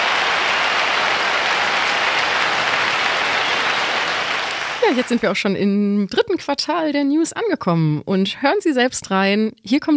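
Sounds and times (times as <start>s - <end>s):
audience applause: 0.0s - 5.3s
speech: 4.9s - 9.9s.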